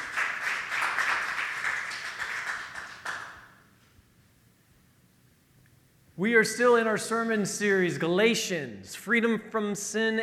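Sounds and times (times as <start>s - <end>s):
audience applause: 0.0s - 3.4s
speech: 6.2s - 10.2s.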